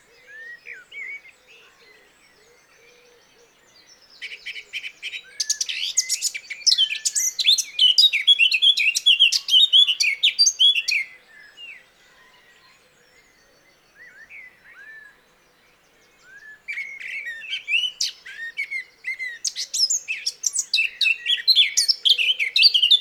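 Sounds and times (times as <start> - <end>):
Eurasian blackcap Sylvia atricapilla singing a scratchy whistled warble: 5.4 - 11.0, 16.7 - 22.9.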